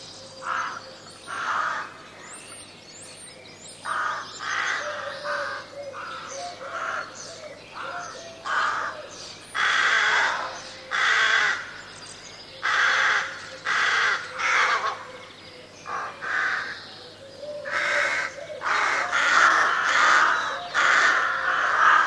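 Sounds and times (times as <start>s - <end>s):
crow cawing: 0.4s - 1.9s, 3.9s - 7.2s, 7.8s - 9.0s, 9.6s - 11.7s, 12.6s - 15.1s, 15.9s - 16.8s, 17.6s - 22.0s.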